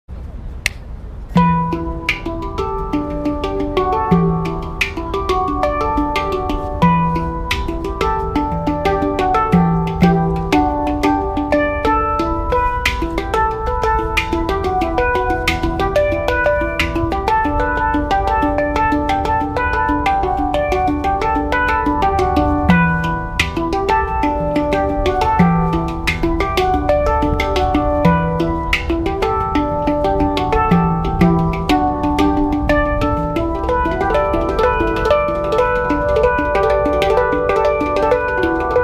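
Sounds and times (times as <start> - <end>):
hang drum meditation music: 0.6 - 38.8.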